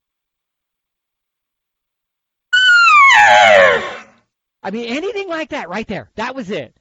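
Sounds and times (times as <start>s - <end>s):
imitation bull elk bugle: 2.6s - 4.1s
speech: 4.7s - 6.8s.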